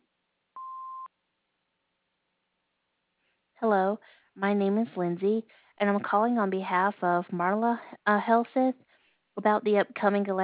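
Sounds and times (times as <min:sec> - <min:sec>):
voicemail beep tone: 0:00.6 - 0:01.1
speech: 0:03.6 - 0:08.8, 0:09.4 - 0:10.4.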